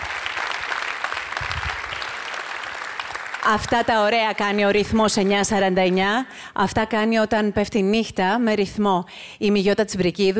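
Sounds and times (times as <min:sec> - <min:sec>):
audience applause: 0:00.0 - 0:04.6
speech: 0:03.4 - 0:10.3.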